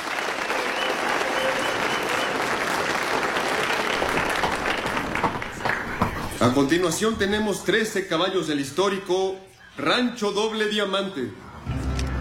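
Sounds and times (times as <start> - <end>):
audience applause at a horse auction: 0.0 - 7.3
speech: 6.4 - 11.4.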